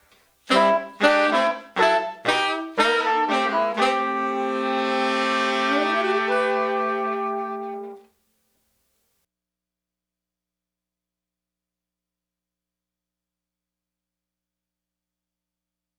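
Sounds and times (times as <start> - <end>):
70s analog funk horns: 0.5 - 8.0.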